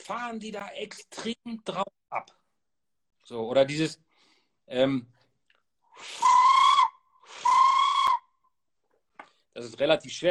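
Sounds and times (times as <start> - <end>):
speech: 0.1 - 2.4, 3.3 - 4.1, 4.7 - 5.2, 6.0 - 6.4, 9.6 - 10.2
blown hunting lure call screaming: 6.2 - 8.3.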